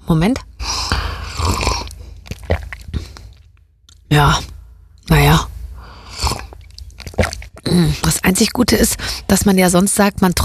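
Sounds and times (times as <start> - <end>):
speech: 0.1 - 0.5, 8.3 - 10.4
mouth and swallowing sounds: 0.6 - 4.0, 5.9 - 8.2
slurp of hot coffee mixed with olive oil: 0.8 - 3.4, 6.0 - 7.7.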